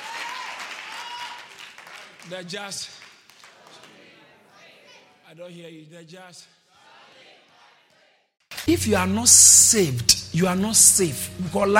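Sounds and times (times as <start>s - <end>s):
audience clapping hands: 0.0s - 4.4s
speech: 2.3s - 3.0s, 5.3s - 6.6s, 8.6s - 11.7s.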